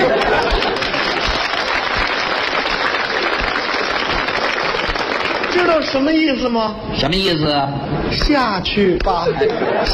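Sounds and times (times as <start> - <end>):
laughter: 0.0 - 1.8, 9.0 - 9.9
audience applause: 0.0 - 6.6
speech: 5.9 - 9.9.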